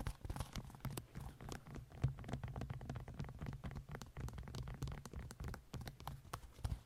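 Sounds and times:
long nails tapping: 0.2 - 6.7.

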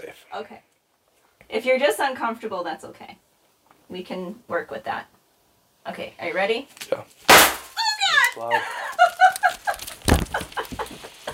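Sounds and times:
speech: 0.1 - 0.8, 1.4 - 3.2, 3.9 - 5.2, 5.8 - 7.4, 8.4 - 9.1
confetti cannon firing: 7.3 - 7.8
laughter: 8.4 - 11.3.

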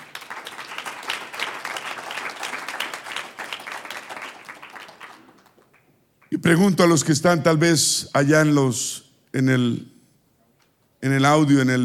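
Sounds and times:
audience applause: 0.0 - 5.9
speech: 6.4 - 9.9, 11.0 - 11.8.

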